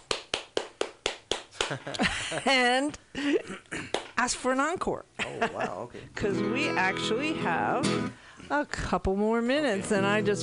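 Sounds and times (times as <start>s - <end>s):
one person's hand claps asking for an encore: 0.0s - 2.1s, 3.9s - 4.2s
speech: 1.7s - 10.4s.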